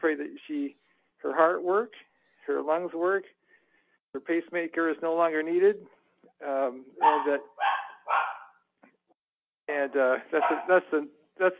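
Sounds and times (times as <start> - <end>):
speech: 0.0 - 3.4, 4.1 - 8.2, 9.7 - 11.5
dog barking excitedly: 7.0 - 8.6, 10.4 - 10.7.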